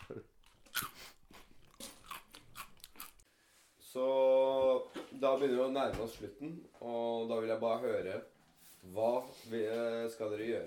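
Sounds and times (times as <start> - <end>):
people eating crunchy snacks during a snack break: 0.0 - 3.2
speech: 0.1 - 0.4, 3.9 - 10.6.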